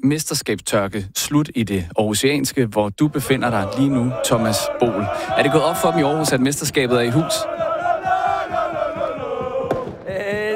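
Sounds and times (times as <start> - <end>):
speech: 0.0 - 7.7
street crowd chanting and singing, celebrating football championship: 3.1 - 10.5
rhythmic stamping or clapping: 3.6 - 10.5.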